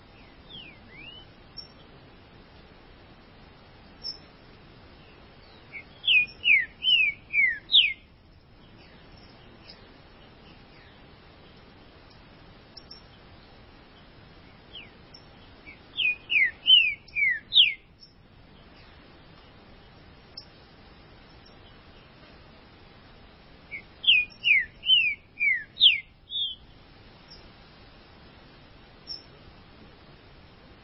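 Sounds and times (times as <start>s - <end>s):
hiss: 0.0s - 30.8s
green-winged saltator whistling song: 0.5s - 1.3s, 5.7s - 8.0s, 15.7s - 17.8s, 23.7s - 26.6s.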